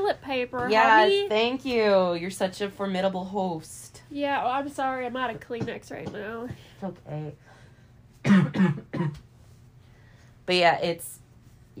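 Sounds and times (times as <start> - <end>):
speech: 0.1 - 7.6, 8.2 - 9.2, 10.5 - 11.2
person clearing throat: 8.2 - 9.2
person coughing: 8.2 - 9.2.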